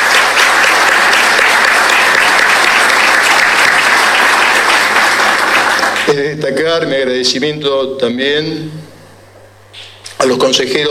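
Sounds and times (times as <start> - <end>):
audience applause: 0.0 - 6.2
speech: 6.2 - 8.8, 10.2 - 10.8.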